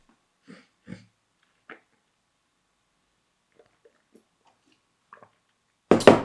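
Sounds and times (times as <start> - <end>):
person drinking water: 3.5 - 5.5.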